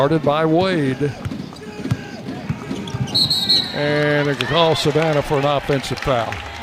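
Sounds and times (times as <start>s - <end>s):
speech: 0.0s - 1.3s, 3.2s - 6.5s
basketball dribbled on the court during a women's game: 0.6s - 3.6s.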